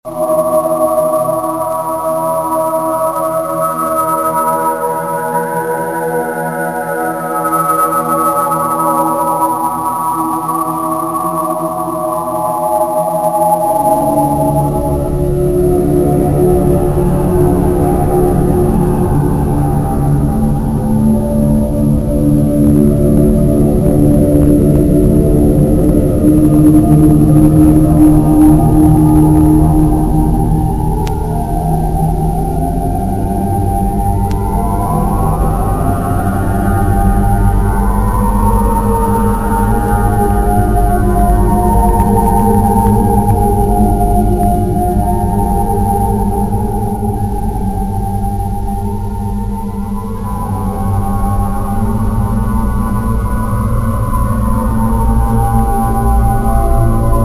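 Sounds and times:
labyrinth ambience: 0.1 - 57.2.

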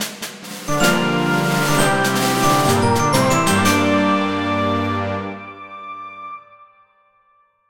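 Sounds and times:
fanfare: 0.7 - 6.6.

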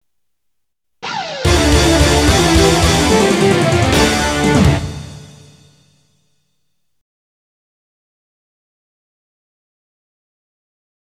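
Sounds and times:
game over jingle: 1.0 - 5.7.

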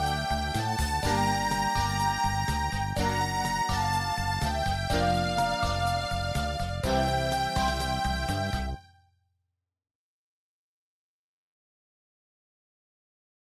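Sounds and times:
MIDI town music: 0.0 - 8.9.

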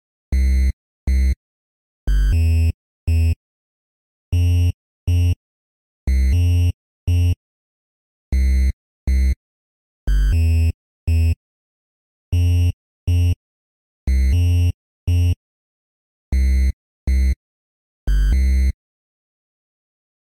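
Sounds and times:
bass: 0.3 - 1.4, 2.1 - 3.4, 4.4 - 5.4, 6.1 - 7.4, 8.3 - 9.4, 10.1 - 11.4, 12.4 - 13.4, 14.1 - 15.4, 16.3 - 17.4, 18.1 - 18.8.

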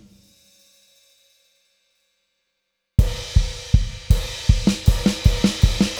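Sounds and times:
downbeat percussion music: 3.1 - 5.9.

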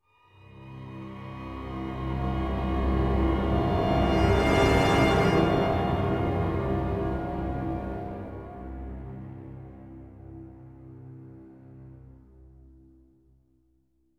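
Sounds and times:
riser sweep: 1.6 - 10.2.

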